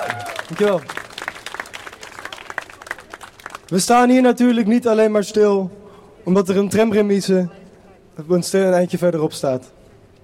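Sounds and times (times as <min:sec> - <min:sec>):
audience applause: 0:00.0 - 0:03.7
speech: 0:00.1 - 0:01.0, 0:03.7 - 0:07.6, 0:08.2 - 0:09.8.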